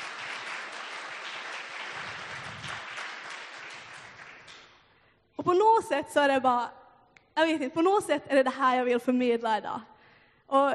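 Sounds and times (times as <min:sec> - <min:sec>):
applause: 0:00.0 - 0:05.0
speech: 0:05.4 - 0:06.8, 0:07.4 - 0:09.9, 0:10.5 - 0:10.7.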